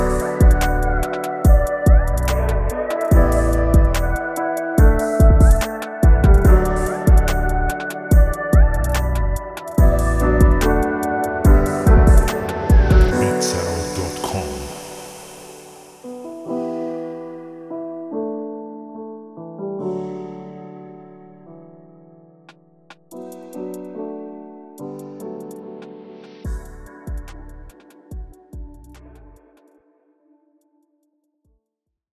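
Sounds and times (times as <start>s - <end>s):
trap beat: 0.0s - 15.6s.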